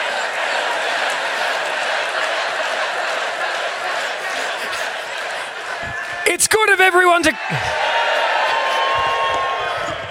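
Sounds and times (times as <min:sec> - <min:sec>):
crowd cheering: 0:00.0 - 0:10.0
laughter: 0:00.0 - 0:10.0
speech: 0:06.3 - 0:08.0.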